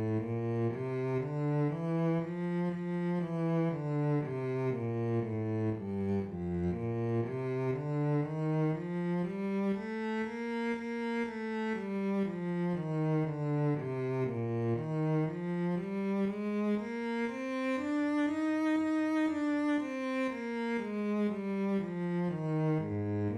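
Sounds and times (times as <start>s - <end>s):
bass playing one-octave scales in twelve keys: 0.0s - 10.3s, 11.2s - 23.3s.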